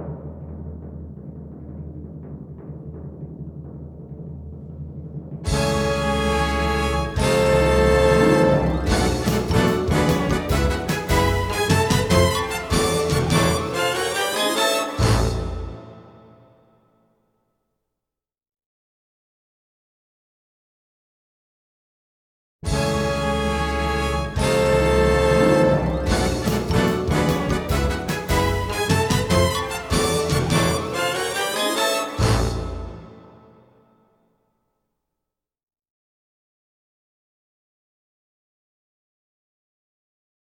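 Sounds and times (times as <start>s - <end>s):
instrumental fanfare: 5.5s - 16.4s, 22.6s - 33.6s.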